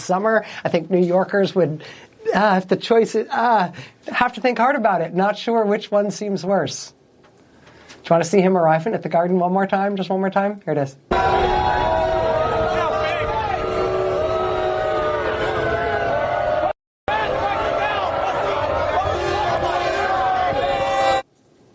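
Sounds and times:
speech: 0.0s - 7.0s, 8.0s - 12.0s
crowd lustily booing at arena arrival in New York: 11.1s - 21.2s.

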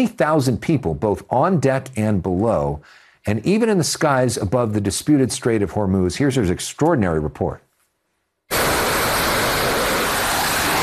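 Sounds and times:
speech: 0.0s - 7.6s
fighter jets taking off from the USS Abraham Lincoln: 8.5s - 10.8s.

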